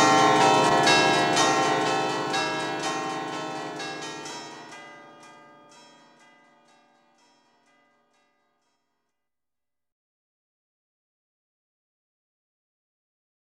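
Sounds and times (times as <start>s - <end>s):
eight church bells ringing a waltz: 0.0s - 8.3s.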